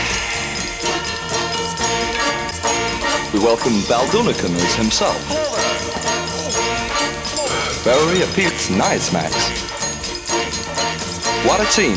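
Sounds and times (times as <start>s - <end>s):
bells ringing: 0.0s - 11.9s
speech: 3.3s - 5.6s, 7.8s - 9.6s, 11.4s - 11.9s.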